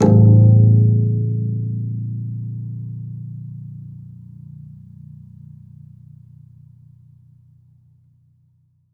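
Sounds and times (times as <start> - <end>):
classical guitar extended technique plink: 0.0 - 2.3.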